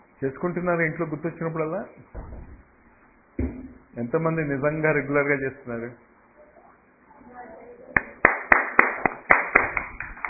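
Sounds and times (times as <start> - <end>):
speech: 0.2 - 2.4, 4.0 - 6.1
audience hand claps during a class session: 7.9 - 10.2.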